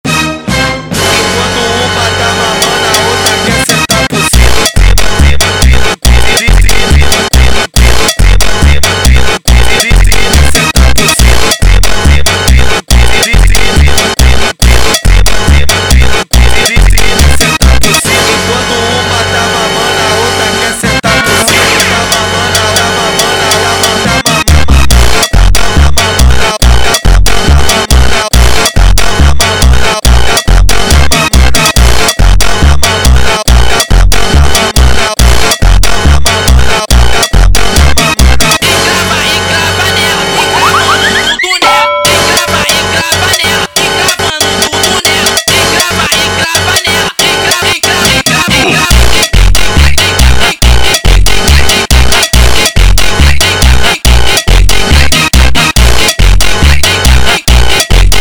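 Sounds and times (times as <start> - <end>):
funk music: 0.0 - 58.2.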